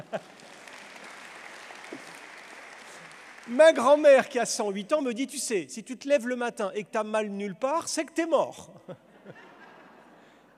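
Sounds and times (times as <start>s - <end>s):
laughter: 0.0s - 0.6s, 8.6s - 10.5s
audience applause: 0.0s - 4.4s
speech: 3.5s - 9.1s.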